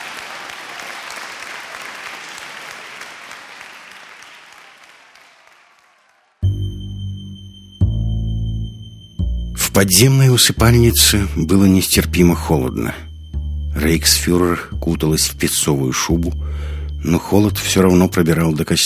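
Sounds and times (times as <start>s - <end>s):
hall audience applause: 0.0s - 6.4s
loud low sustained tones: 6.4s - 18.8s
speech: 9.8s - 13.1s, 13.8s - 18.8s.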